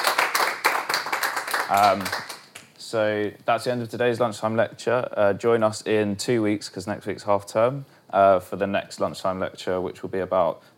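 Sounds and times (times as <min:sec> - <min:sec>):
audience clapping: 0:00.0 - 0:02.7
speech: 0:01.7 - 0:02.3, 0:02.9 - 0:10.7.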